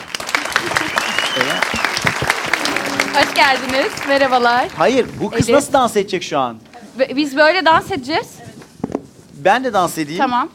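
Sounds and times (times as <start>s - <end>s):
audience applause: 0.0s - 5.4s
speech: 3.2s - 8.4s, 9.4s - 10.5s.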